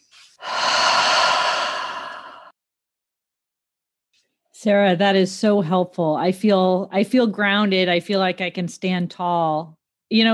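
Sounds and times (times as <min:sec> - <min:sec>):
slow deep breath in and out: 0:00.4 - 0:02.6
speech: 0:04.6 - 0:10.3.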